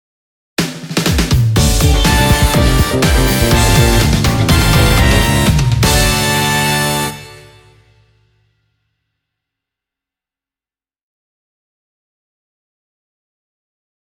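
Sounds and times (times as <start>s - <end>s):
game result jingle: 1.6s - 8.0s.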